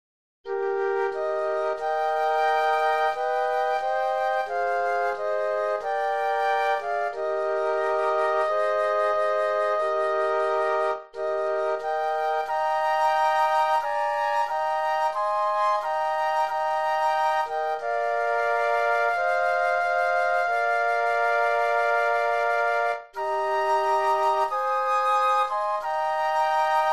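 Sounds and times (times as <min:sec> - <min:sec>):
flute trio playing: 0:00.5 - 0:26.9.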